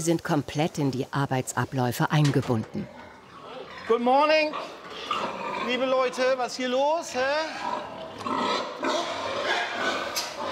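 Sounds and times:
speech: 0.0s - 3.0s, 3.9s - 9.1s
young sows grunting and squealing at feeding time in individual stalls: 2.7s - 10.4s.

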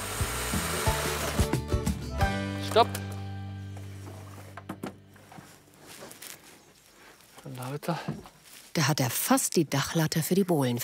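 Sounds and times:
saw cutting through a wooden wall for a door opening: 0.0s - 1.6s
speech: 2.8s - 3.1s, 7.7s - 10.8s.

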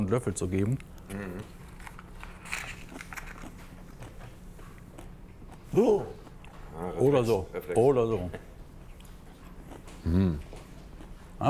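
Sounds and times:
low steady hum: 0.0s - 11.4s
speech: 0.1s - 1.6s, 5.8s - 6.2s, 6.8s - 8.5s, 10.1s - 10.5s
biting and chewing sour fermented food sampled by hand: 0.6s - 6.7s, 8.9s - 11.2s.

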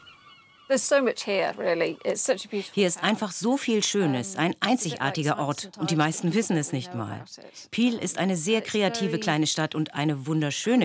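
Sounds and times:
seagulls screaming: 0.0s - 0.8s
speech: 0.7s - 10.8s.

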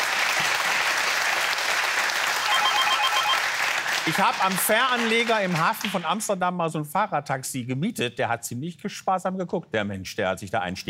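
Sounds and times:
applause sound effect: 0.0s - 6.2s
speech: 4.0s - 10.8s.

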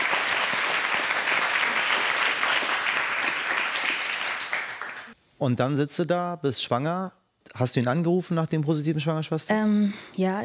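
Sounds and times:
applause: 0.0s - 5.2s
speech: 5.4s - 10.4s.

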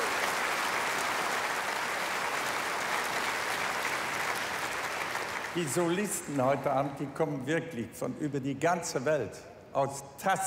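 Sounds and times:
audience clapping: 0.0s - 6.3s
speech: 5.6s - 10.4s.

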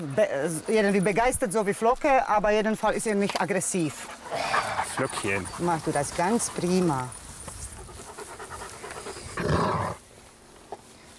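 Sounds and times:
speech: 0.0s - 7.2s
dog panting: 4.0s - 9.4s.

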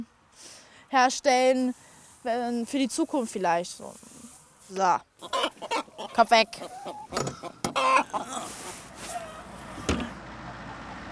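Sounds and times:
speech: 0.9s - 8.6s
chickens clucking: 4.1s - 10.2s.

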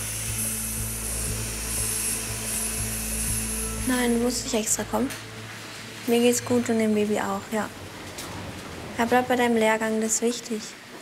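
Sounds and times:
surgical drill running: 0.0s - 4.6s
speech: 3.9s - 5.3s, 6.1s - 7.9s, 9.0s - 10.8s.

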